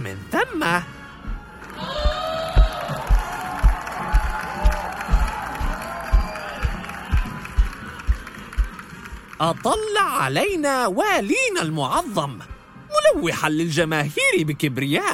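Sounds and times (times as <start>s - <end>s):
speech: 0.2s - 1.0s, 9.4s - 12.5s, 13.1s - 15.1s
low rhythmic thumps: 1.2s - 9.4s
large crowd cheering and applauding: 1.4s - 10.6s.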